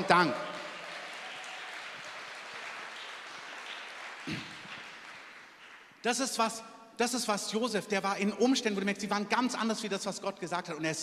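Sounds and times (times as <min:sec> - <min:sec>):
audience applause: 0:00.0 - 0:06.0
speech: 0:00.1 - 0:00.5, 0:06.0 - 0:11.0.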